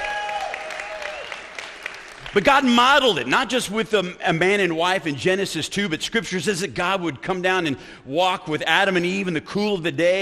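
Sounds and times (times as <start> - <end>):
audience applause for the wives: 0.0 - 2.7
speech: 2.3 - 10.2.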